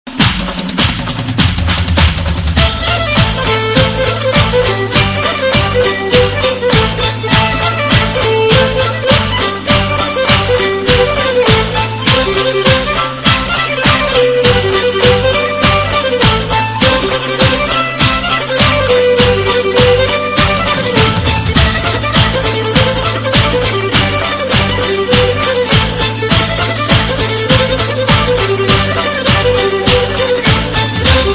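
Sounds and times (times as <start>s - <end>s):
violin playing a lezginka: 0.2s - 31.3s.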